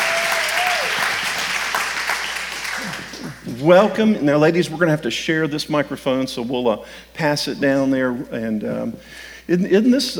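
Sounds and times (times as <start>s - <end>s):
audience applause welcoming a panel onto the stage: 0.0s - 3.7s
speech: 3.6s - 10.1s.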